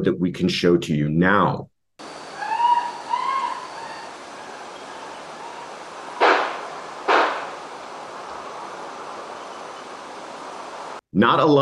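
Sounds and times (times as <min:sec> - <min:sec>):
speech: 0:00.0 - 0:01.7, 0:11.2 - 0:11.5
high wavering screams: 0:02.0 - 0:10.2
loud sharp gunshots: 0:06.2 - 0:07.6.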